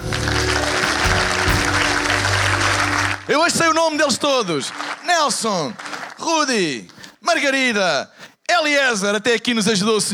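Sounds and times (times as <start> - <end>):
crowd applause for the band: 0.0 - 6.3
speech: 3.3 - 10.1.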